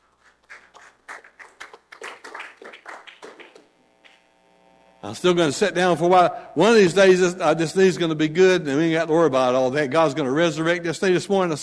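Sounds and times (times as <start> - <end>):
audience hand clapping: 0.0 - 4.2
speech: 5.1 - 11.6.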